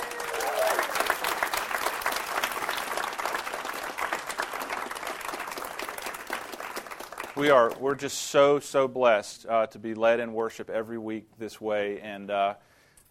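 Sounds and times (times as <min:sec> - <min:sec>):
audience cheering and applauding: 0:00.0 - 0:07.8
speech: 0:07.4 - 0:12.7.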